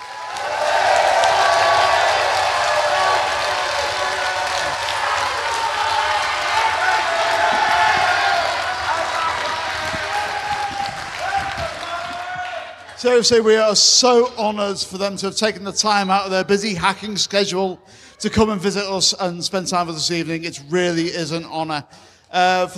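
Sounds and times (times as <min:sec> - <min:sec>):
scattered cheers and whoops: 0:00.0 - 0:12.8
crowd applauding: 0:00.0 - 0:13.2
speech: 0:13.0 - 0:22.7.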